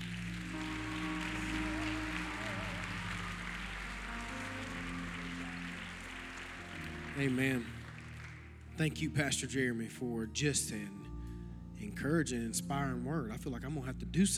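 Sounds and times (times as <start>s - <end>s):
church congregation clapping in praise: 0.0s - 9.5s
speech: 7.2s - 7.8s, 8.8s - 11.0s, 11.8s - 14.3s.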